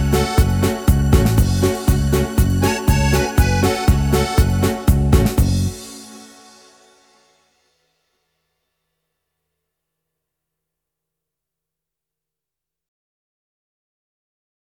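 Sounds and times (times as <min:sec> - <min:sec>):
instrumental music: 0:00.0 - 0:07.5.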